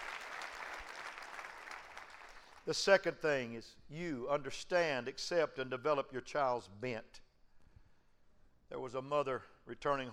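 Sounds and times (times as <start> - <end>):
audience clapping hands: 0.0 - 2.6
speech: 2.6 - 7.2, 8.7 - 10.1.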